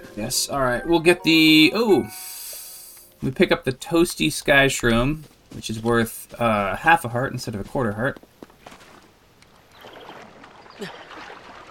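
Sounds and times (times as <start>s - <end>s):
speech: 0.2s - 2.3s, 3.2s - 8.3s, 10.8s - 11.0s
water splashing as a character swims in Zelda Tears of the Kingdom: 8.6s - 11.6s.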